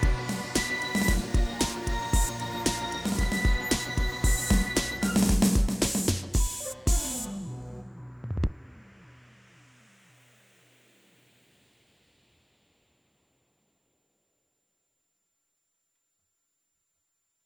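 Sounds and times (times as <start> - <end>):
instrumental music: 0.0 - 8.6.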